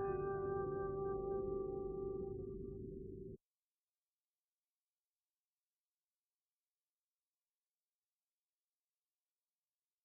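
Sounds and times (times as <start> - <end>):
instrumental music: 0.0 - 3.4.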